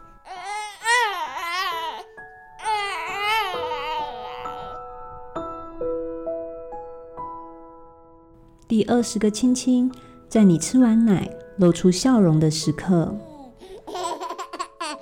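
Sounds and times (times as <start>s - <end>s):
baby crying: 0.2s - 4.8s, 13.2s - 14.9s
speech: 8.7s - 13.3s.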